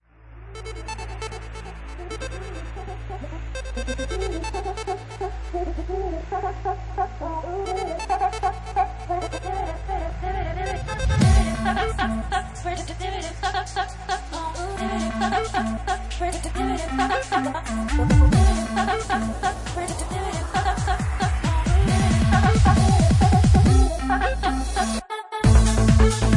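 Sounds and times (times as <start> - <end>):
electro house remix: 0.5 - 26.3.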